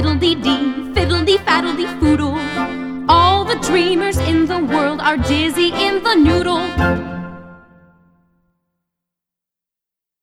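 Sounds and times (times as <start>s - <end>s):
guided vocals: 0.0s - 7.2s.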